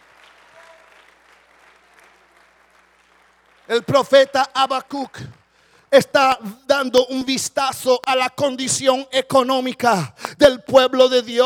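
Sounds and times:
audience clapping: 0.0 - 6.9, 9.8 - 11.4
speech: 3.7 - 11.4.

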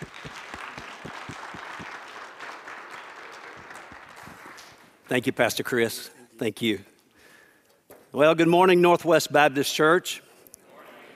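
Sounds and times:
church audience applauding: 0.0 - 5.0
speech: 5.1 - 6.9, 8.1 - 10.2.

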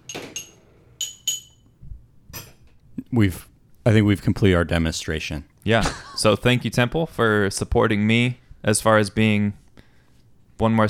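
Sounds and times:
heavy spoon clinking on a glass: 0.1 - 1.7
speech: 3.1 - 9.6, 10.6 - 10.8.

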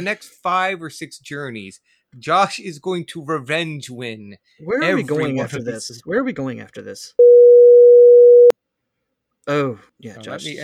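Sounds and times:
speech: 0.0 - 7.3, 9.5 - 10.6
censor bleep tone: 7.2 - 8.5.

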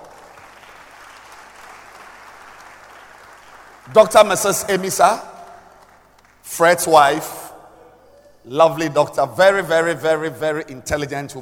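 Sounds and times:
audience applause: 0.0 - 4.1
speech: 3.9 - 5.3, 6.5 - 7.4, 8.4 - 11.3.

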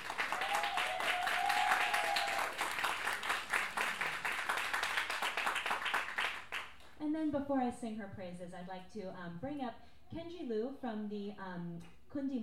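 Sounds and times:
audience applause: 0.0 - 6.8
speech: 7.4 - 12.4.

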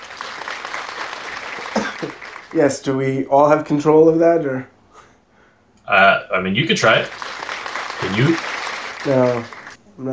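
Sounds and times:
many people clapping: 0.0 - 2.9, 6.8 - 9.8
speech: 2.0 - 4.7, 5.9 - 7.2, 8.0 - 8.4, 9.0 - 10.1.

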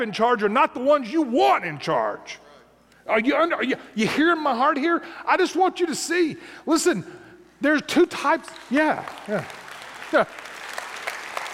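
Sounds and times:
speech: 0.0 - 2.4, 3.1 - 10.5
audience applause: 8.4 - 11.5.

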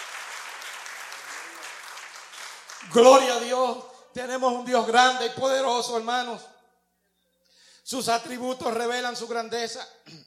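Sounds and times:
church congregation applauding: 0.0 - 3.7
speech: 2.8 - 6.5, 7.9 - 10.2.

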